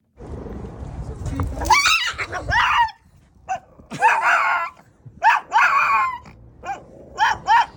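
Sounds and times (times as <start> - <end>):
dog screaming yelps in anger and terror: 1.6 - 7.7.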